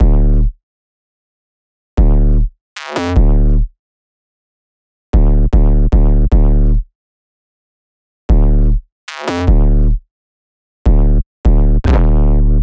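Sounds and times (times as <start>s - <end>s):
bass loop at 152 BPM: 0.0s - 0.6s, 2.0s - 3.7s, 5.2s - 6.9s, 8.3s - 10.0s, 10.9s - 12.6s.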